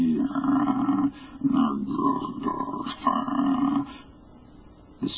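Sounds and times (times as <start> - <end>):
hideous croaking roar: 0.1 - 4.0.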